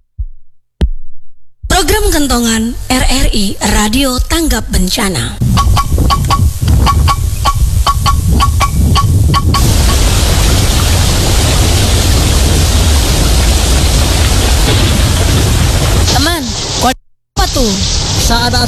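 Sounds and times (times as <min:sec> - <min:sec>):
speech: 0:02.0 - 0:05.4, 0:17.6 - 0:18.6
heavy rain: 0:06.2 - 0:18.6.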